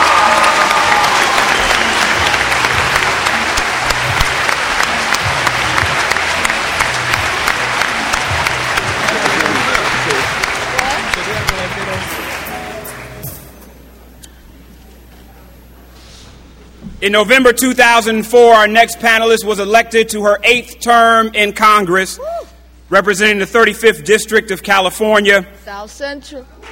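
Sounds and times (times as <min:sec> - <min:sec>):
audience applause: 0:00.0 - 0:13.5
speech: 0:17.0 - 0:26.7.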